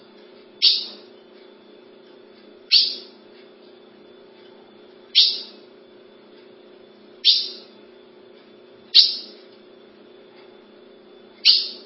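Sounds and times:
ultramarine grosbeak calling: 0.6s - 1.1s, 2.7s - 3.2s, 5.1s - 5.7s, 7.2s - 7.8s, 8.9s - 9.4s, 11.4s - 11.8s.

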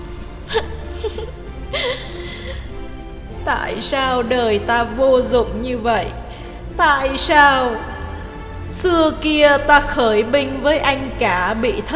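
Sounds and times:
speech: 0.5s - 1.4s, 3.5s - 6.2s, 6.8s - 7.9s, 8.8s - 11.9s
woman sobbing with breathy gasps and high whimpers: 0.5s - 2.7s.

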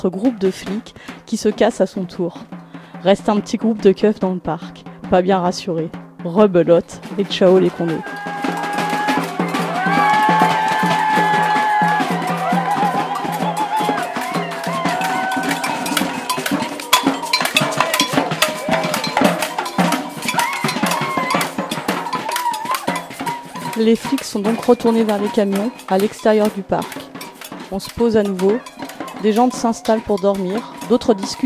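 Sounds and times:
speech: 0.0s - 8.3s, 23.8s - 27.0s, 27.7s - 31.4s
batucada drumming: 0.0s - 31.4s
clanking cowbell: 7.2s - 31.4s
crowd shouting and cheering: 7.5s - 31.4s.

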